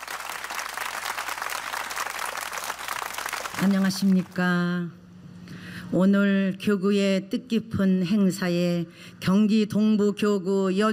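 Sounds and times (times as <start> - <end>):
audience applause: 0.0 - 4.3
speech: 3.6 - 5.0, 5.9 - 10.9.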